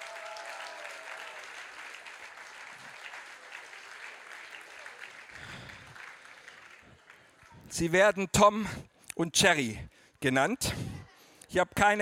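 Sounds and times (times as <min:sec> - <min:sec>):
thunderous audience applause: 0:00.0 - 0:07.8
speech: 0:07.7 - 0:10.9, 0:11.5 - 0:12.0.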